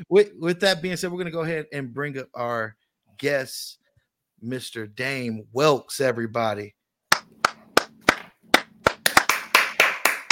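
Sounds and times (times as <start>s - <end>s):
speech: 0.0s - 3.8s, 4.4s - 6.8s
people clapping: 7.1s - 10.3s.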